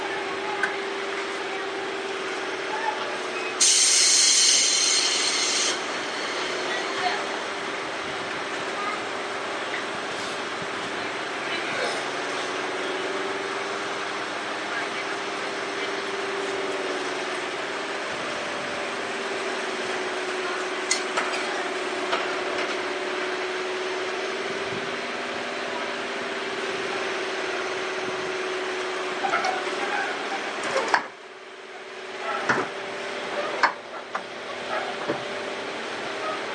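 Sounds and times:
Sotetsu 7000 series aluminium train from Yokohama to Yamato: 0.0 - 36.5.

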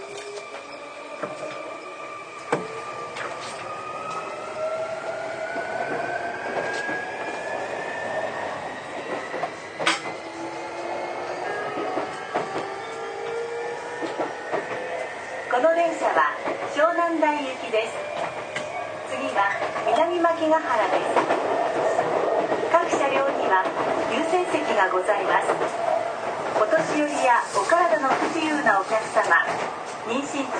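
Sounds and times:
Sotetsu 20000 series train ride rumble: 0.0 - 30.5.

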